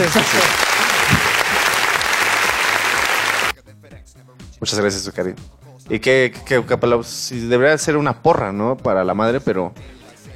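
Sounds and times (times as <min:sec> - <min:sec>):
speech: 0:00.0 - 0:01.3, 0:04.6 - 0:10.0
audience applause: 0:00.0 - 0:03.5.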